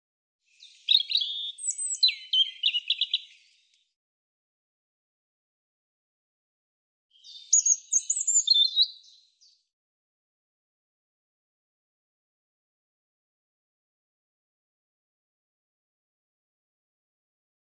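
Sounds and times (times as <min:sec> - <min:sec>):
European robin singing: 0:00.5 - 0:03.8, 0:07.1 - 0:09.7.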